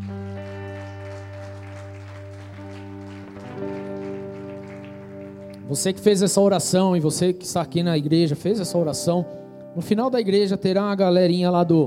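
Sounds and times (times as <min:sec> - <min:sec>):
audience applause: 0:00.0 - 0:06.0
speech: 0:05.7 - 0:11.8.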